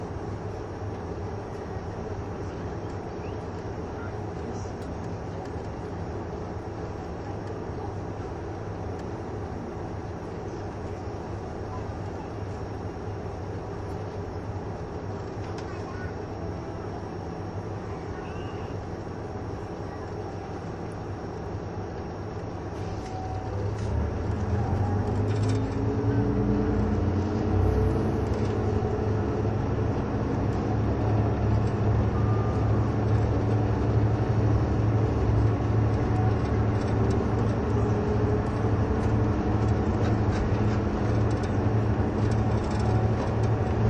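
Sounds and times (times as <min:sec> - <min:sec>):
KiHa 71 series Yufuin no Mori diesel train wheels rumbling: 0:00.0 - 0:43.8
KiHa 71 series diesel engine droning: 0:00.0 - 0:43.8.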